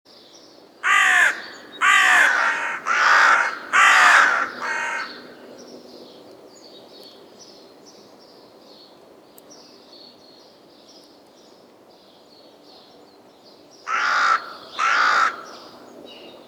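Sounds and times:
carrion crow Corvus corone calling in harsh caws: 0.8 - 5.4, 13.9 - 15.9.

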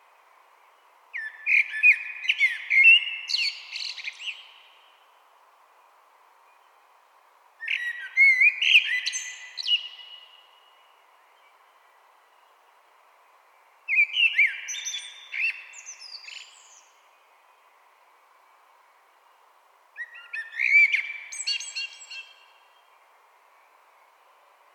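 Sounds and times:
common blackbird singing: 1.2 - 4.9, 7.6 - 10.8, 13.9 - 17.1, 20.0 - 22.9.

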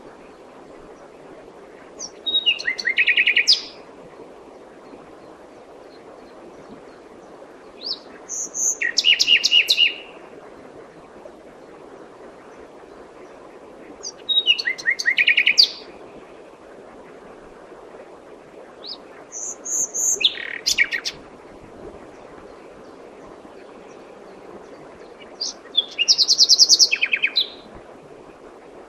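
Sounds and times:
common nightingale whistling song: 2.0 - 3.8, 7.8 - 10.1, 14.1 - 15.8, 18.8 - 21.1, 25.4 - 27.6.

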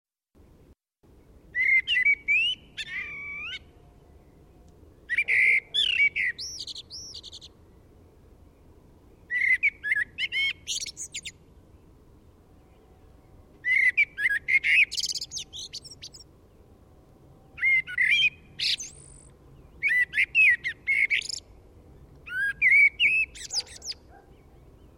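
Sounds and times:
common blackbird singing: 1.4 - 7.5, 9.2 - 11.4, 12.6 - 16.6, 17.5 - 21.6, 22.2 - 24.9.

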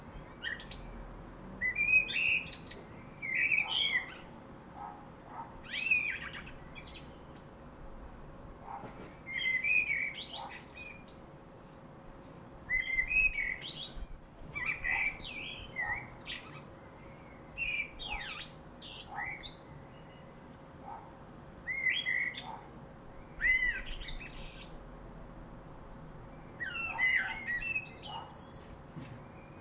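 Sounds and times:
common blackbird singing: 0.0 - 1.0, 1.6 - 5.0, 5.6 - 8.0, 9.2 - 11.4, 12.7 - 20.4, 21.6 - 29.5.

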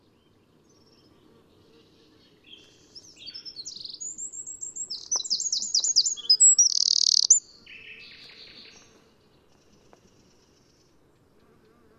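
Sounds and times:
Eurasian wren Troglodytes troglodytes singing: 2.4 - 8.8.

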